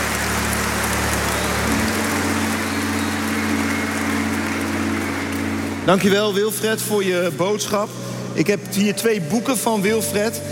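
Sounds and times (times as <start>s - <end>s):
audience applause: 0.0s - 7.6s
speech: 5.8s - 10.5s.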